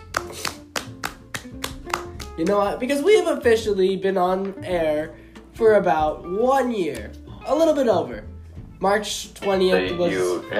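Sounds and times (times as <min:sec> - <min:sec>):
round of applause, hands clapping: 0:00.0 - 0:02.9, 0:06.9 - 0:07.2
speech: 0:02.4 - 0:10.5.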